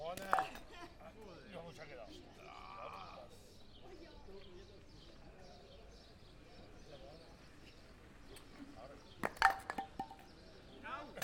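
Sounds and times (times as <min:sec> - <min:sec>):
murmur of voices and chatter: 0:00.0 - 0:11.2
three-cushion billiard balls striking: 0:09.2 - 0:10.3.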